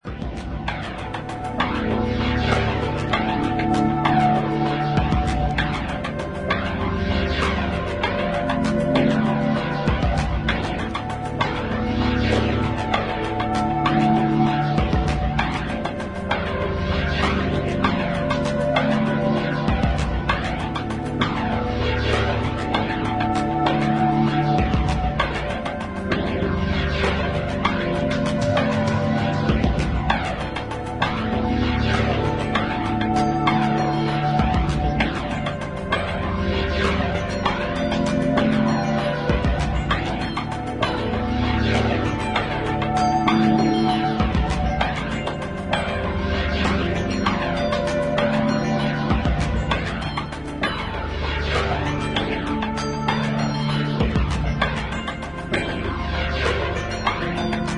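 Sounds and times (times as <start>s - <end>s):
experimental ambient music: 0.0s - 57.7s.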